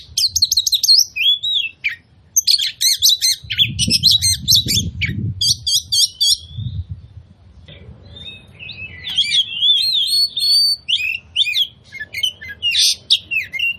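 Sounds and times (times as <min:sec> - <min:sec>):
Oriental magpie-robin chirping song used as a lure: 0:00.0 - 0:07.2, 0:08.0 - 0:13.7.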